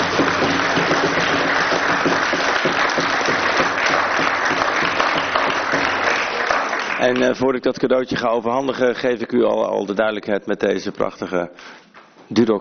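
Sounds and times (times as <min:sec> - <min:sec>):
sustained audience applause: 0:00.0 - 0:07.5
speech: 0:07.0 - 0:12.5.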